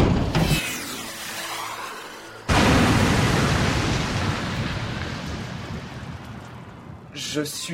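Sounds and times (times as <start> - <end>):
missile launch in hangar: 0.0 - 7.0
explosion in hangar: 2.5 - 7.1.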